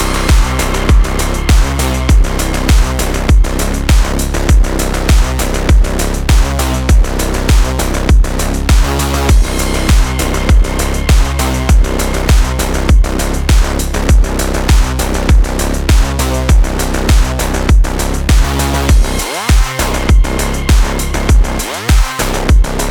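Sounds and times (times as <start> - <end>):
sport electro beat: 0.0 - 22.8.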